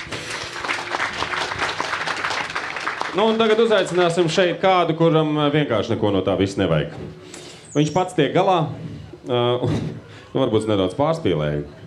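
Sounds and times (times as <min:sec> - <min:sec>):
room full of people applauding: 0:00.0 - 0:04.6
speech: 0:03.1 - 0:11.8.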